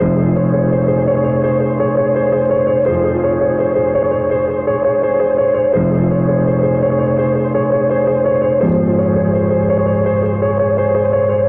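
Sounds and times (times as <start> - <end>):
sad piano: 0.0 - 11.4.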